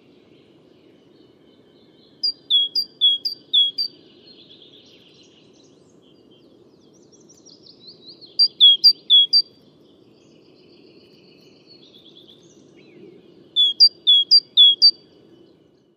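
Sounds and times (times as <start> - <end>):
great tit two-note whistles: 2.2 - 3.9, 8.4 - 9.4.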